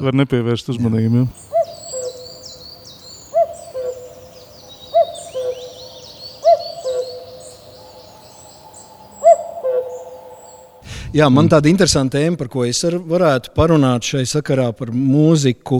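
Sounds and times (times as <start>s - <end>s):
speech: 0.0s - 1.5s, 11.2s - 15.7s
cuckoo calling its low two-note cuck-oo: 1.1s - 10.9s
small birds twittering: 1.1s - 10.9s.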